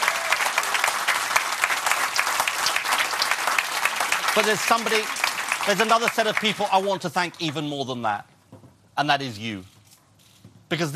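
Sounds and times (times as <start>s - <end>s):
audience applause: 0.0s - 7.0s
speech: 4.4s - 8.3s, 9.0s - 9.7s, 10.7s - 10.9s.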